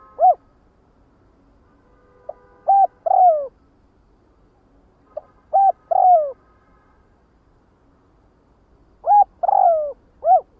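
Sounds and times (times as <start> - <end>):
spotted dove cooing: 0.0 - 0.4, 2.7 - 3.5, 5.5 - 6.4, 9.0 - 10.5.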